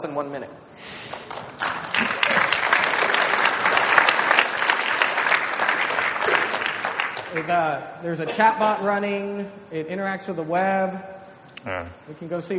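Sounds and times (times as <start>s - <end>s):
speech: 0.0s - 2.2s, 7.3s - 12.5s
audience applause: 1.1s - 7.6s.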